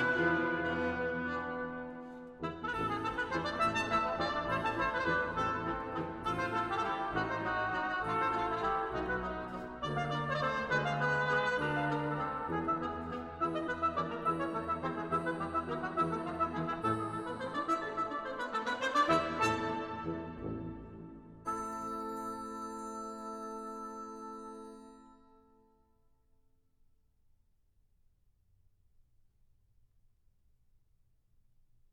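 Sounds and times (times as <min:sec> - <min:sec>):
brass ensemble playing a classical piece: 0:00.0 - 0:25.2.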